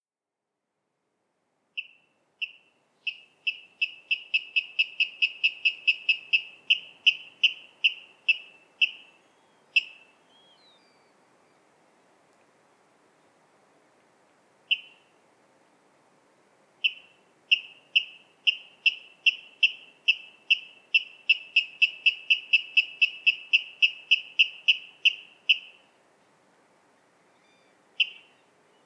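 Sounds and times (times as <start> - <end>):
water rail kip calls: 1.8 - 10.8, 14.7 - 15.0, 16.8 - 25.8, 28.0 - 28.4.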